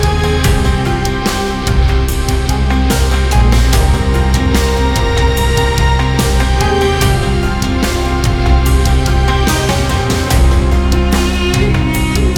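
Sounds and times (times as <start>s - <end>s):
hybrid ethnic orchestral music: 0.0s - 12.3s.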